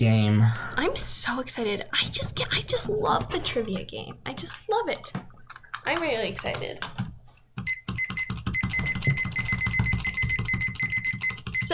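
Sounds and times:
speech: 0.0s - 7.0s
30-second timer being set: 7.6s - 11.7s.

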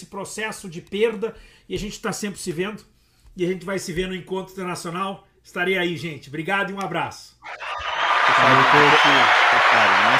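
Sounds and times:
speech: 0.0s - 7.8s, 8.4s - 10.1s
audience applause: 7.5s - 10.1s.

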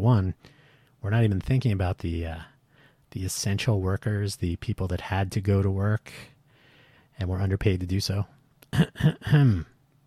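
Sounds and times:
speech: 0.0s - 2.5s, 3.1s - 6.3s, 7.2s - 9.7s
person clearing throat deliberately for effect: 8.6s - 9.8s.

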